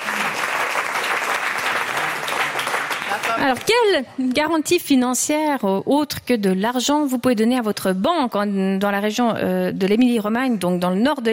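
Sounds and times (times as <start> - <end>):
audience applause: 0.0 - 3.7
speech: 3.4 - 11.3.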